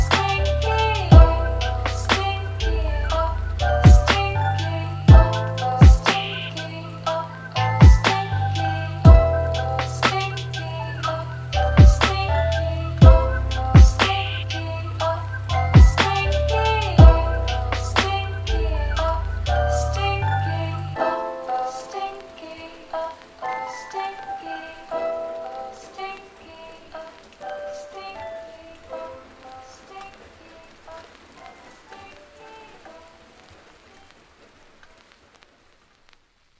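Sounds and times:
soft lo-fi beat: 0.0 - 20.2.

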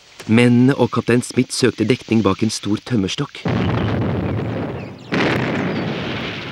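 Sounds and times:
speech: 0.3 - 4.0
blasting explosion of a tree stump: 3.4 - 6.5.

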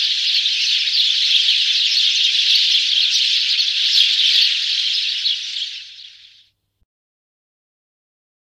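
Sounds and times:
sparrow chirping: 0.0 - 6.6.

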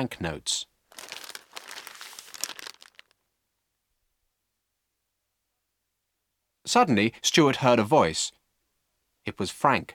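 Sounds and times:
speech: 0.0 - 0.7, 6.7 - 8.4, 9.2 - 9.9
bundle of newspapers crackling and rustling as it is unwrapped: 0.9 - 3.2.

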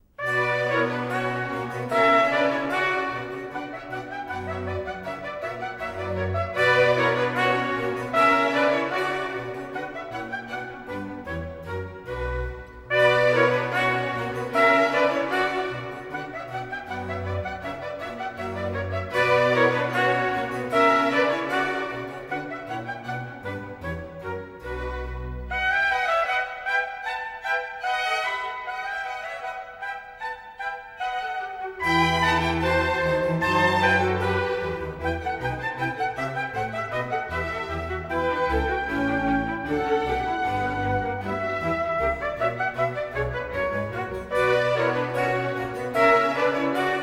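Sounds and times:
orchestral suite: 0.0 - 47.0.

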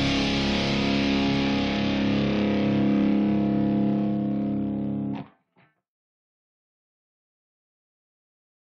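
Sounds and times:
metal music accompaniment: 0.0 - 5.2.

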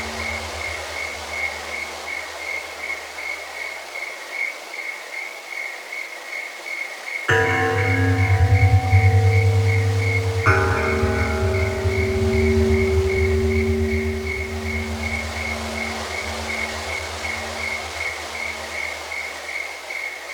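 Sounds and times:
Japanese bells: 0.0 - 3.5, 7.3 - 19.9
relaxing spa music: 0.0 - 3.8, 7.3 - 20.0.

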